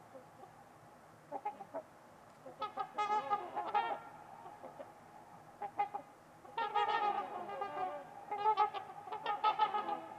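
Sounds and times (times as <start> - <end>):
trumpeter swans giving short nasal honks: 2.4 - 5.0, 5.6 - 10.1.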